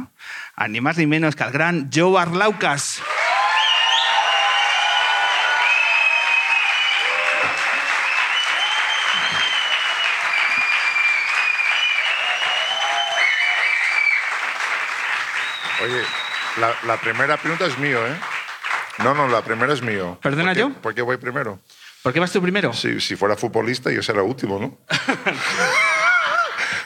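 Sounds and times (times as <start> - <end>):
speech: 0.6 - 3.2, 16.6 - 18.3, 19.0 - 25.8
whoops and cheers: 3.0 - 14.6, 25.6 - 26.6
theater audience clapping: 3.0 - 20.4
laughter: 24.9 - 26.8.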